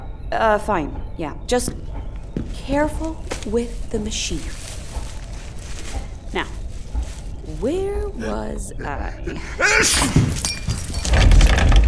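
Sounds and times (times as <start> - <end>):
speech: 0.3 - 4.7, 6.3 - 6.6, 7.5 - 10.5
coffee cup knocked over and shattering: 9.8 - 11.4.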